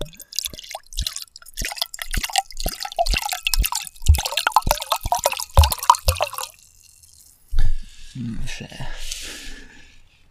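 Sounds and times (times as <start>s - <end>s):
wine being poured into a glass: 0.0s - 7.4s.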